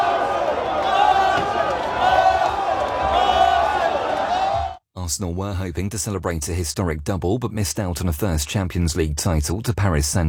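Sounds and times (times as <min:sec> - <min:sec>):
Arsenal fans cheering and shouting at an open-top bus victory parade: 0:00.0 - 0:04.8
speech: 0:05.1 - 0:10.2.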